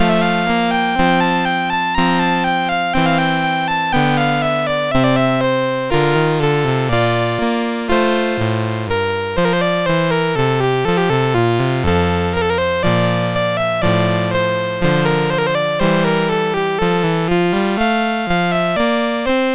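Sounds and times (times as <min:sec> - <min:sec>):
chiptune polonaise in F major on MOS6581R3 chip: 0:00.0 - 0:19.5.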